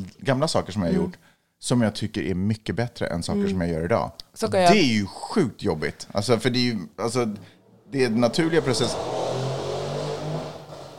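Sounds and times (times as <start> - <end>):
speech: 0.2 - 9.4
motorcycle passing: 7.7 - 10.9.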